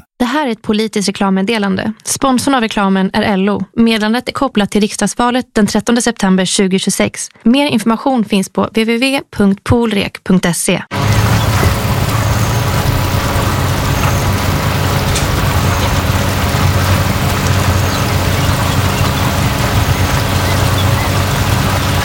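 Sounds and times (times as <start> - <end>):
speech: 0.3 - 11.1
fuel pump filling a car until the click: 10.9 - 22.0.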